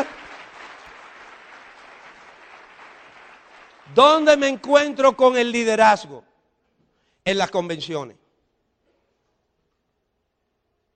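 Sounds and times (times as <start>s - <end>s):
audience applause: 0.0s - 4.3s
speech: 3.9s - 6.3s, 7.2s - 8.2s.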